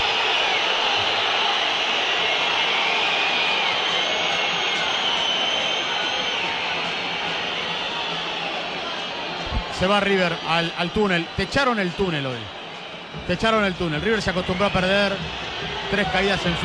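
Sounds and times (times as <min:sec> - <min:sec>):
stadium crowd whistling at departing team: 0:00.0 - 0:16.6
speech: 0:09.8 - 0:12.6, 0:13.2 - 0:16.6.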